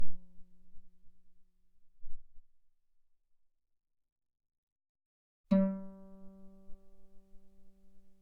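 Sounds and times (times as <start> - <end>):
guitar notes played mezzo forte on the A string: 5.5 - 7.2.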